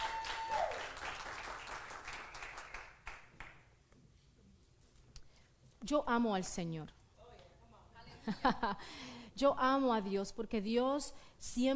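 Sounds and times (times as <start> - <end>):
audience applause: 0.0 - 3.3
speech: 5.8 - 7.0, 8.2 - 11.7.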